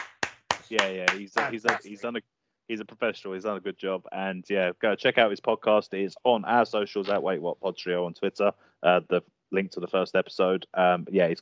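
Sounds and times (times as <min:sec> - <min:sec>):
hand claps: 0:00.0 - 0:02.1, 0:07.0 - 0:07.2
voices cheering: 0:00.6 - 0:11.4
laughter: 0:00.7 - 0:11.4
speech: 0:00.7 - 0:11.4.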